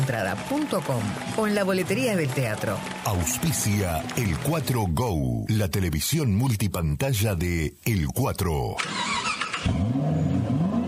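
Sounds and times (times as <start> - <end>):
speech: 0.1 - 10.8
car engine cranking, starting and revving: 8.8 - 10.8.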